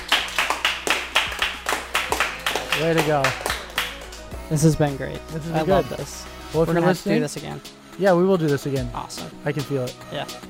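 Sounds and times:
small live audience clapping: 0.0s - 4.6s
speech: 2.8s - 3.5s, 4.5s - 10.4s.

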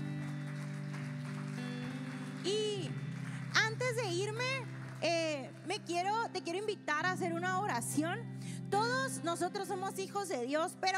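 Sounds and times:
audience applause: 0.0s - 5.7s
speech: 4.2s - 10.9s.

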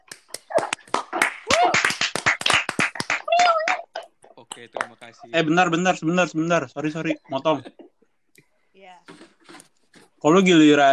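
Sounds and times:
small group clapping hands: 0.0s - 5.2s
excited voices: 0.4s - 7.9s
person cheering: 1.4s - 2.2s, 3.0s - 4.0s
speech: 4.6s - 7.8s, 10.2s - 10.9s.

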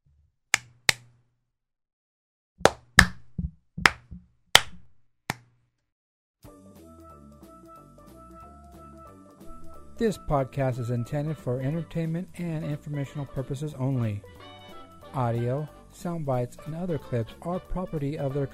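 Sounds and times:
hands clapping: 2.6s - 3.2s, 3.8s - 5.5s
speech: 10.0s - 14.4s, 15.1s - 18.5s.

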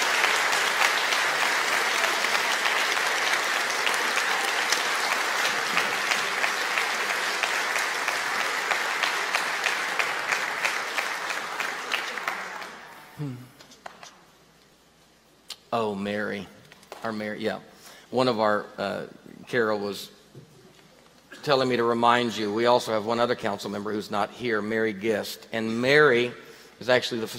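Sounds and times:
church congregation clapping to welcome new leadership council members: 0.0s - 13.1s
speech: 15.8s - 20.2s, 21.4s - 27.3s.

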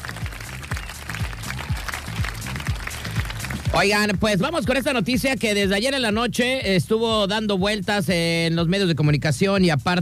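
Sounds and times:
crowd applause: 0.0s - 3.9s
thumping low beat: 2.2s - 10.0s
speech: 3.8s - 10.0s.

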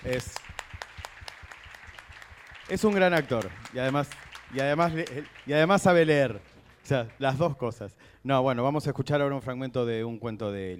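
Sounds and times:
speech: 0.0s - 0.5s, 2.7s - 10.7s
audience applause: 0.0s - 7.8s.

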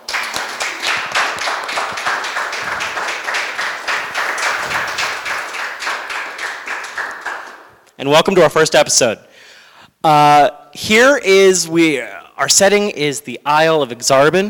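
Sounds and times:
audience applauding players at a live tabletop roleplaying show: 0.0s - 7.8s
speech: 8.0s - 9.3s, 10.0s - 14.4s.

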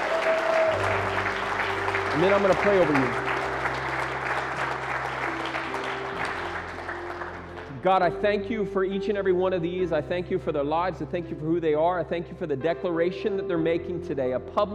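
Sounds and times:
audience applause: 0.0s - 7.8s
speech: 2.2s - 3.2s, 7.8s - 14.7s.

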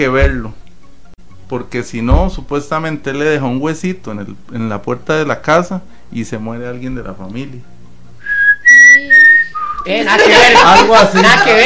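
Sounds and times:
speech: 0.0s - 0.6s, 1.5s - 7.8s, 9.0s - 9.2s, 9.8s - 11.6s
person whistling a creature-like call: 8.2s - 9.9s
laughter: 9.8s - 11.6s.

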